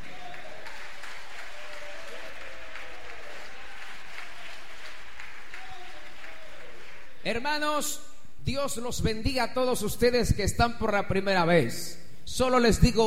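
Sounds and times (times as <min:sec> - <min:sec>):
applause: 0:00.0 - 0:07.2
speech: 0:07.3 - 0:13.0.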